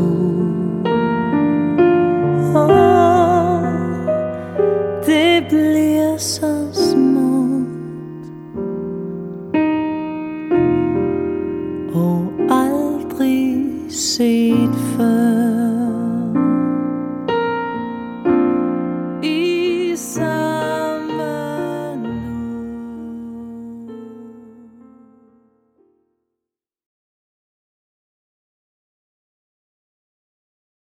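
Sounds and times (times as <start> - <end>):
woman singing: 0.0 - 8.4, 11.9 - 16.7, 19.2 - 25.0
piano: 0.0 - 26.2.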